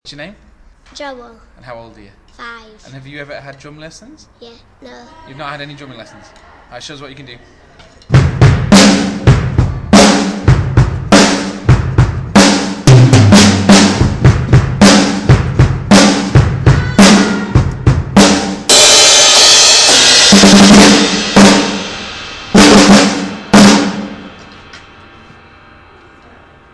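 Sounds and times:
5-year-old boy drumming: 0:08.1 - 0:24.5.

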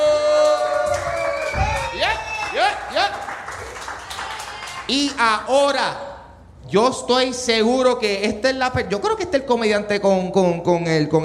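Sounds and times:
audience applause and cheering: 0:00.0 - 0:05.3
speech: 0:04.9 - 0:06.0, 0:06.7 - 0:11.2.

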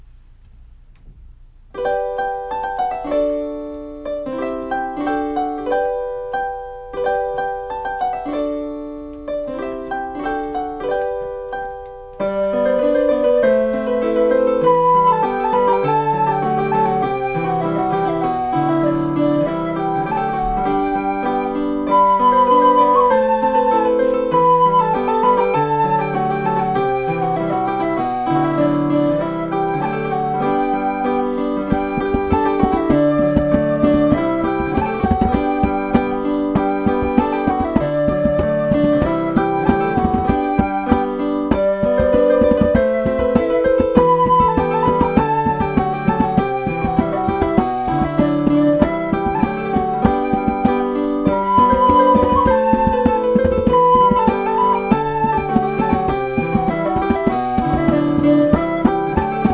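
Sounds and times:
keyboard: 0:01.7 - 0:59.5
biscuit tin percussion: 0:31.6 - 0:59.5.

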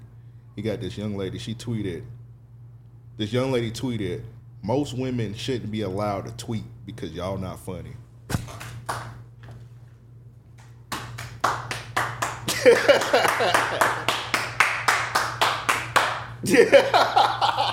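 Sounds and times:
speech: 0:00.6 - 0:02.2, 0:03.2 - 0:08.4, 0:12.6 - 0:14.1, 0:16.4 - 0:17.4
person clapping hands: 0:08.4 - 0:09.2, 0:10.6 - 0:16.3
laughter: 0:12.4 - 0:14.1, 0:16.4 - 0:17.7.

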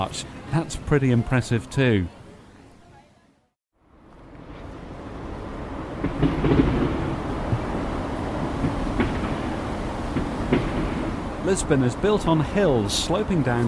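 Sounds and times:
speech: 0:00.0 - 0:02.2, 0:11.5 - 0:13.6
traffic rumbling across a bridge overhead: 0:03.8 - 0:13.6.

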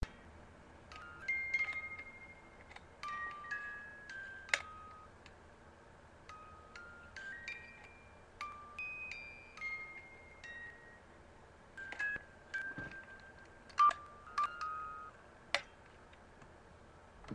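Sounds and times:
music box melody: 0:00.9 - 0:05.4, 0:06.2 - 0:15.3.

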